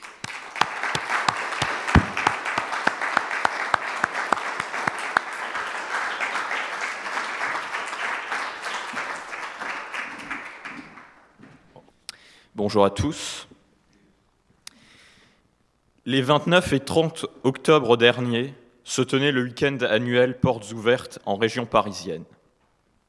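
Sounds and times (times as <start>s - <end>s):
audience applauding: 0.0s - 11.3s
speech: 12.6s - 13.5s, 16.1s - 22.4s.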